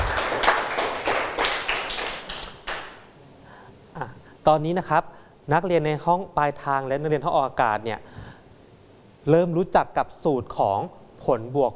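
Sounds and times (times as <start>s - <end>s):
hand clapping: 0.0s - 3.1s
speech: 4.5s - 8.2s, 9.2s - 11.7s.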